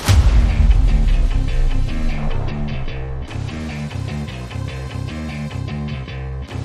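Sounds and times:
guitars: 0:00.3 - 0:06.6.

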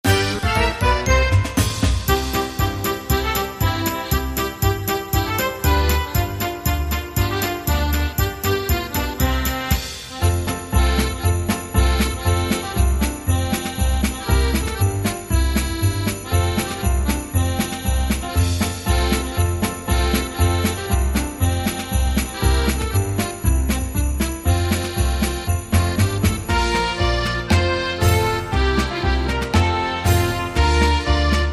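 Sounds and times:
Christmas polka music: 0:00.0 - 0:31.5.

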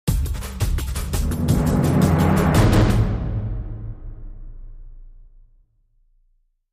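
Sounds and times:
epic energetic music sting: 0:00.6 - 0:04.4.

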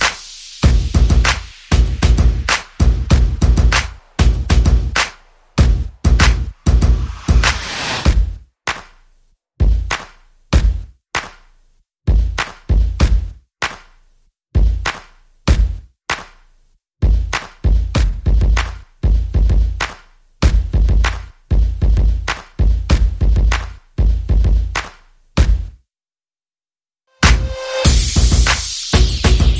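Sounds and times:
percussion: 0:00.0 - 0:25.8, 0:27.2 - 0:29.5
sound effects: 0:06.7 - 0:08.1.

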